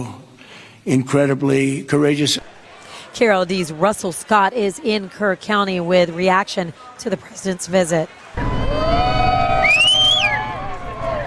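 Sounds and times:
speech: 0:00.8 - 0:08.5
crowd cheering at the Youth Event Center in Kerrville: 0:02.4 - 0:11.2
whoops: 0:08.4 - 0:11.2
whistles: 0:09.1 - 0:10.6.

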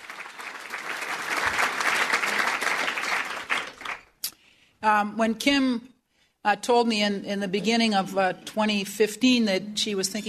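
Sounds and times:
audience applause: 0:00.0 - 0:04.1
speech: 0:04.8 - 0:10.2.

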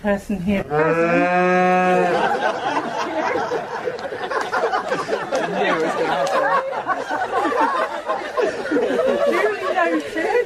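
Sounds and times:
speech: 0:00.0 - 0:04.4
cow mooing during an outdoor wedding on a UK farm: 0:00.7 - 0:02.2
wedding guests laughing and chattering: 0:01.7 - 0:10.4.

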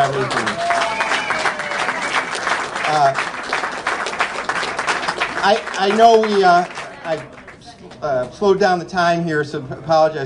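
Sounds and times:
audience applause: 0:00.0 - 0:08.3
speech: 0:05.4 - 0:07.4, 0:08.0 - 0:10.2.

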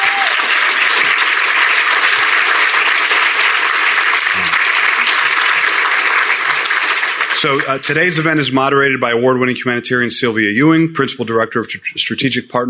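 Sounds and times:
audience applause: 0:00.0 - 0:08.3
speech: 0:07.4 - 0:12.6.

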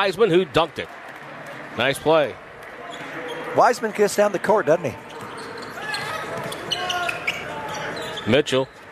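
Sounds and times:
speech: 0:00.0 - 0:01.0, 0:01.8 - 0:02.4, 0:03.6 - 0:05.0, 0:08.2 - 0:08.8
basketball being dribbled during an NBA game involving Utah: 0:06.3 - 0:06.7.

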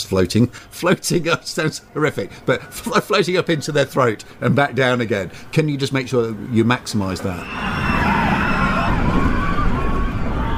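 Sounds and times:
speech: 0:00.1 - 0:08.0
kids screaming on a roller coaster: 0:07.3 - 0:10.5.

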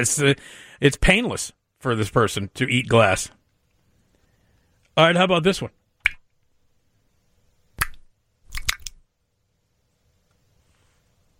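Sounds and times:
speech: 0:00.0 - 0:03.4, 0:05.0 - 0:05.8
wet squelching squish of an eye popping: 0:07.8 - 0:09.0.

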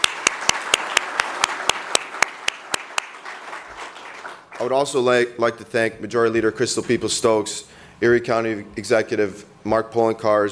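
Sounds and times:
audience applause: 0:00.0 - 0:04.8
one loud clapper: 0:00.0 - 0:04.8
speech: 0:04.6 - 0:10.5.

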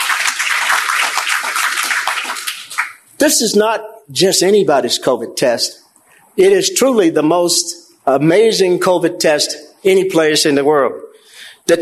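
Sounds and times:
audience applause: 0:00.0 - 0:03.0
speech: 0:03.2 - 0:05.8, 0:06.4 - 0:11.7.

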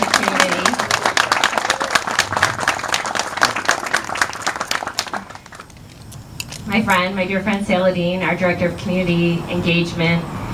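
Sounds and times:
audience applause: 0:00.0 - 0:05.8
speech: 0:06.8 - 0:10.3.

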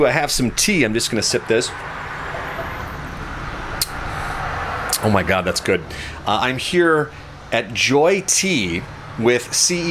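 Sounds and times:
speech: 0:00.0 - 0:02.0, 0:05.0 - 0:09.8
cars driving past on Lake Street outside Keystone Park in River Forest: 0:00.0 - 0:09.8
sharp click: 0:03.8 - 0:04.0.

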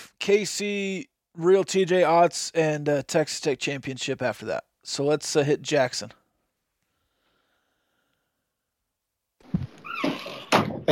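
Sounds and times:
speech: 0:00.2 - 0:06.2
low thump: 0:09.5 - 0:09.8
saloon door closing: 0:09.5 - 0:10.9.

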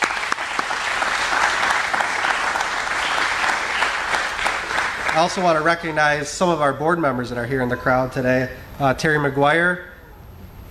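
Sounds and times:
audience applause: 0:00.0 - 0:06.3
speech: 0:05.2 - 0:09.9.

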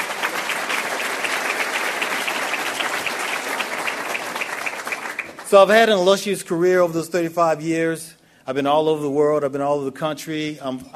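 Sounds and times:
audience applause: 0:00.0 - 0:05.7
speech: 0:05.5 - 0:10.9.

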